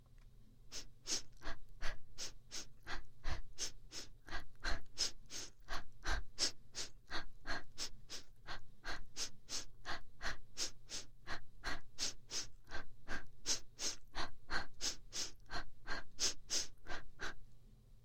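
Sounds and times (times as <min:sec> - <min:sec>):
fast running breathing: 0:00.7 - 0:17.4.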